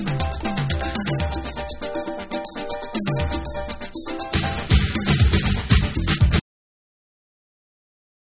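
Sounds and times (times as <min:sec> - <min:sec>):
dub piano music: 0:00.0 - 0:06.4.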